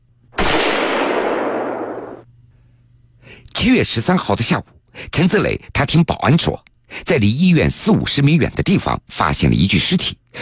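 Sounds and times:
single gunshot outside: 0.4s - 2.2s
speech: 3.5s - 10.4s.

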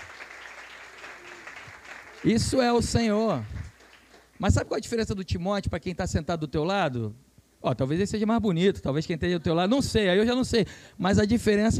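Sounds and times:
audience applause: 0.0s - 4.4s
speech: 2.2s - 3.6s, 4.4s - 11.7s.

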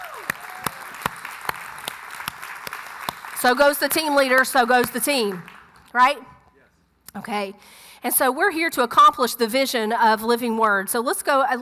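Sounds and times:
round of applause: 0.0s - 5.9s
speech: 3.4s - 6.3s, 7.1s - 11.6s.

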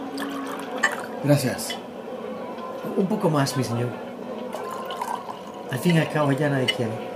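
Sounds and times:
water being poured into a cup: 0.2s - 1.2s, 4.5s - 5.8s
speech: 1.2s - 1.8s, 3.0s - 4.1s, 5.7s - 7.1s.

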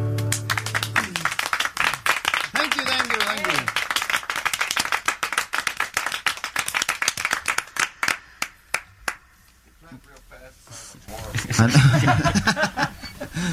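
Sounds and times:
group clapping hands: 0.1s - 9.3s
laughter: 11.1s - 13.5s
speech: 11.6s - 12.7s.

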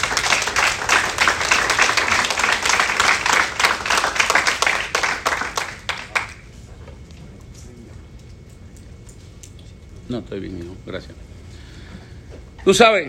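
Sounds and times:
audience applause: 0.0s - 6.5s
speech: 10.1s - 11.3s, 12.7s - 13.0s.

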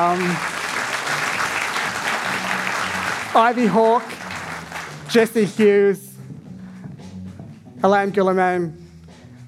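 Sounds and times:
speech: 0.0s - 1.2s, 3.3s - 4.2s, 5.1s - 6.1s, 7.8s - 8.8s
audience applause: 0.0s - 5.4s.

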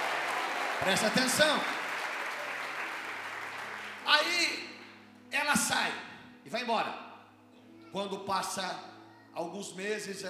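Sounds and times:
audience applause: 0.0s - 4.6s
speech: 0.8s - 1.8s, 5.3s - 7.0s, 7.9s - 10.2s.

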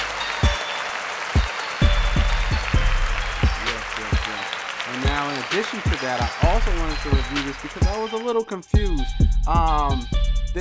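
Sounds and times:
round of applause: 0.0s - 8.3s
speech: 5.2s - 10.6s.

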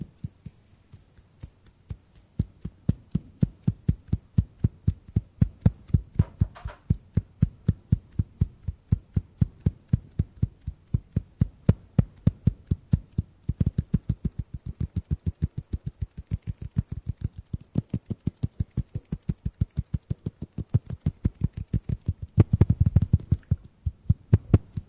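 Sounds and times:
hand tapping for ASMR: 0.0s - 24.8s.

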